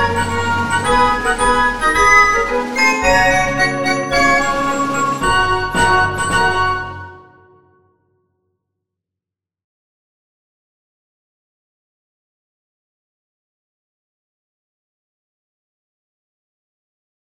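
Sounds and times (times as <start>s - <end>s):
Swedish military march: 0.0s - 7.3s.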